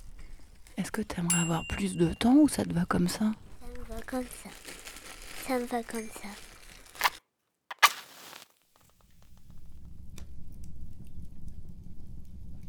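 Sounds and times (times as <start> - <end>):
speech: 0.8 - 3.4, 4.1 - 4.8, 5.5 - 6.5
crackling fire: 3.0 - 9.6.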